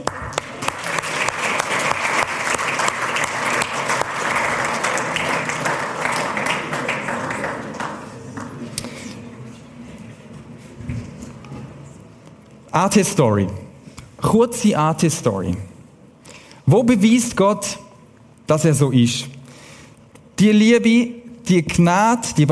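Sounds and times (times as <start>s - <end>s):
audience applause: 0.0s - 8.7s
speech: 12.8s - 13.6s, 14.3s - 15.7s, 16.7s - 17.8s, 18.5s - 19.4s, 20.4s - 22.5s.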